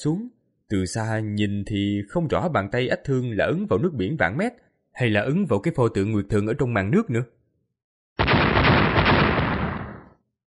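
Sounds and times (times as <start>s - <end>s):
speech: 0.0s - 7.4s
thunderous explosion boom: 8.2s - 10.1s.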